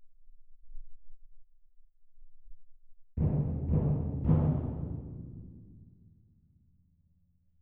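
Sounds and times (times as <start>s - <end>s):
percussion: 3.2s - 6.6s.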